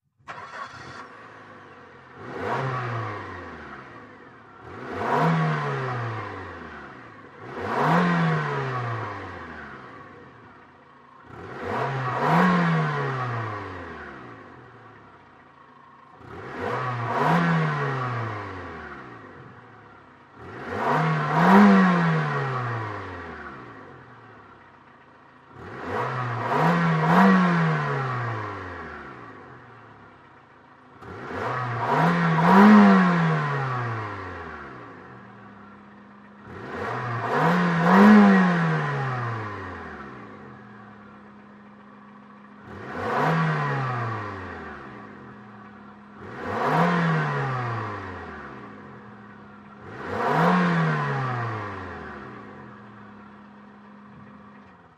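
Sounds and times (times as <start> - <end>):
small compact car engine revving off: 0.0 - 54.9.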